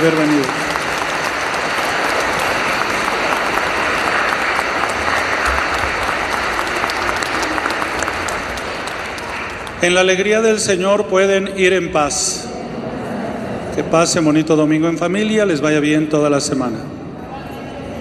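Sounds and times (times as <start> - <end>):
speech: 0.0 - 0.7, 9.8 - 12.5, 13.8 - 17.0
audience applauding: 0.0 - 10.3.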